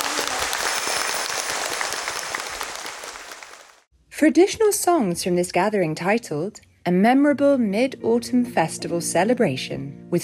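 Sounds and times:
audience applause at a mid-autumn festival gathering: 0:00.0 - 0:03.9
speech: 0:04.2 - 0:10.2.

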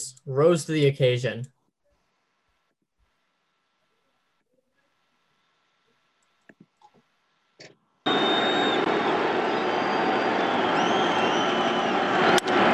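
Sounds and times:
speech: 0:00.2 - 0:01.6
baseball stadium crowd erupting: 0:08.1 - 0:12.7.

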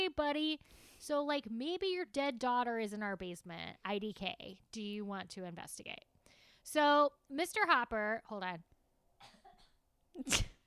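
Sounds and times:
speech: 0:00.2 - 0:09.4
person coughing: 0:09.2 - 0:10.6.

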